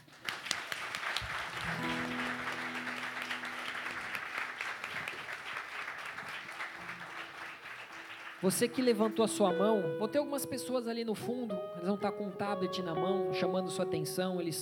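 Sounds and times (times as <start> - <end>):
audience applauding: 0.0 - 9.4
speech: 8.4 - 14.6.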